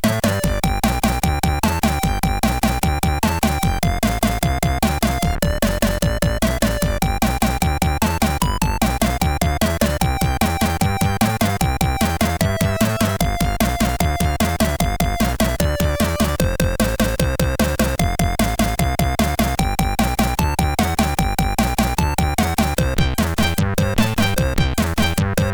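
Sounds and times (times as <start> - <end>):
rock and roll music: 0.0 - 25.5.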